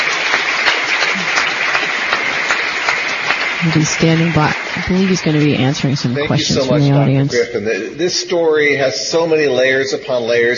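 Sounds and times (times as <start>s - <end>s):
standing ovation applause from large audience: 0.0s - 6.9s
speech: 3.6s - 10.5s.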